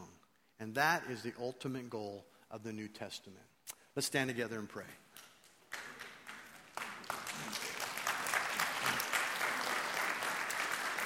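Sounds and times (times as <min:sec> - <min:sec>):
speech: 0:00.6 - 0:05.0
audience clapping: 0:05.2 - 0:11.0.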